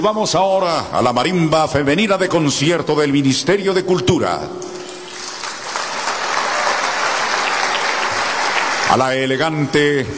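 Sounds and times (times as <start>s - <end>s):
speech: 0.0s - 4.8s, 8.9s - 10.1s
welcoming applause: 4.8s - 9.4s.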